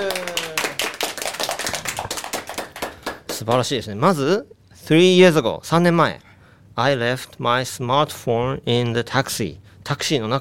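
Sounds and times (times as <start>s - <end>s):
small group hand clapping: 0.0s - 3.8s
speech: 3.4s - 10.4s.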